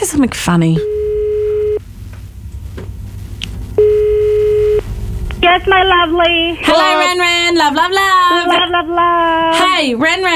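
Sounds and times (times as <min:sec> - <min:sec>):
speech: 0:00.0 - 0:01.0, 0:05.4 - 0:10.3
telephone dialing tone while calling: 0:00.8 - 0:01.8, 0:03.8 - 0:04.8.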